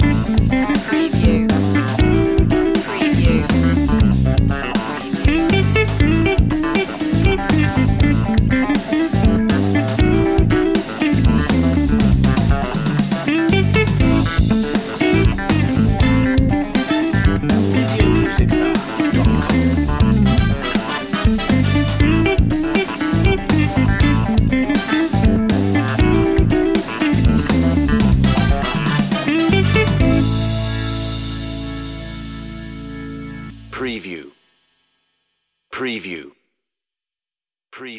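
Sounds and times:
funk soul music: 0.0 - 34.2.

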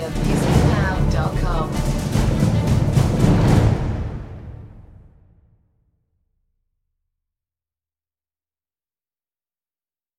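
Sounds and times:
percussion: 0.0 - 5.4
staccato battle call music: 0.0 - 5.4.

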